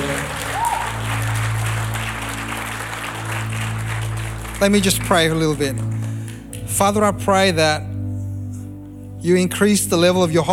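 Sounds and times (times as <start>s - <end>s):
audience applause: 0.0s - 6.4s
speech: 4.6s - 6.0s, 6.7s - 7.9s, 9.2s - 10.5s.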